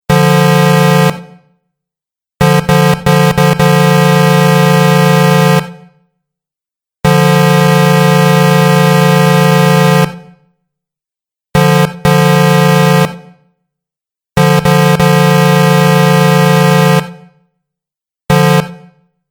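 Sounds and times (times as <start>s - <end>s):
truck horn: 0.1s - 1.2s, 2.4s - 5.7s, 7.0s - 10.2s, 11.6s - 13.3s, 14.4s - 17.1s, 18.3s - 19.0s.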